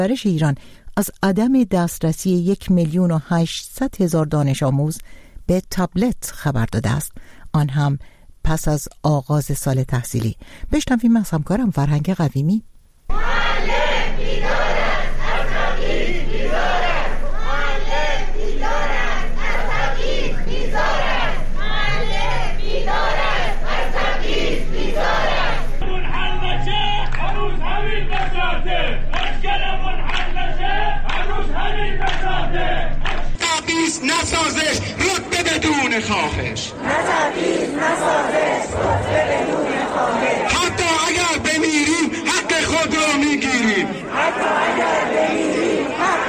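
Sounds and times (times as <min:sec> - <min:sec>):
speech: 0:00.0 - 0:14.6, 0:33.9 - 0:40.8
crowd of teachers protesting for better pay in Iranian cities: 0:13.1 - 0:46.2.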